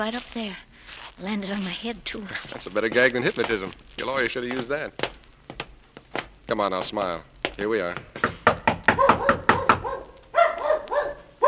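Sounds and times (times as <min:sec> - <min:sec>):
speech: 0:00.0 - 0:05.2, 0:06.5 - 0:08.2
loud knocking on a door: 0:07.4 - 0:10.0
dog barking: 0:08.9 - 0:11.4.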